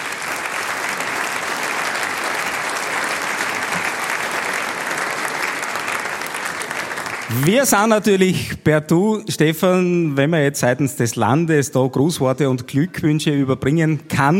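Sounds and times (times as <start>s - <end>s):
audience applause: 0.0s - 8.0s
speech: 7.3s - 14.3s.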